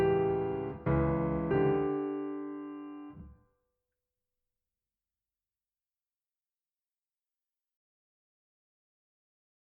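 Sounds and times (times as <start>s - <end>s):
prelude music: 0.0s - 3.4s.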